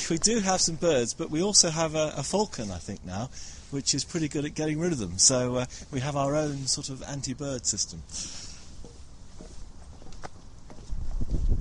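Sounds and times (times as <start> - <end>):
footsteps on a metal gantry: 0.0 - 1.0, 8.5 - 11.6
speech: 0.1 - 8.5.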